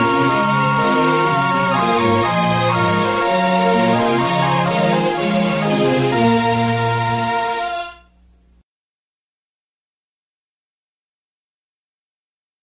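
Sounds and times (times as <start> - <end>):
slow jig instrumental: 0.0 - 7.9.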